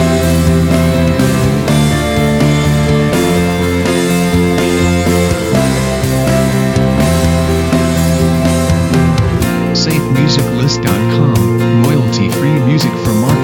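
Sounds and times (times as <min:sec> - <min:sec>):
energetic uplifting rock opener music: 0:00.0 - 0:13.4.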